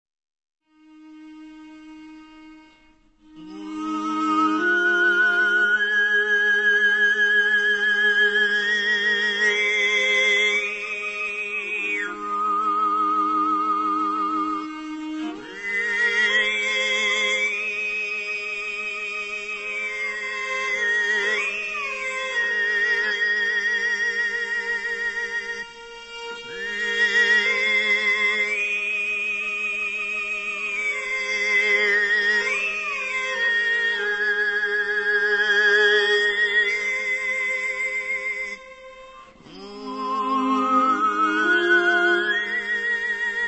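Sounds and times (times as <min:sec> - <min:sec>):
traditional folk music: 0:00.8 - 0:43.4.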